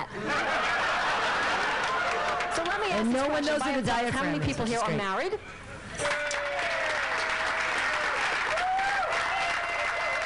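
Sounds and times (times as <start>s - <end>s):
laughter: 0.1s - 2.5s
audience applause: 0.7s - 3.2s, 6.0s - 10.2s
speech: 3.0s - 5.6s.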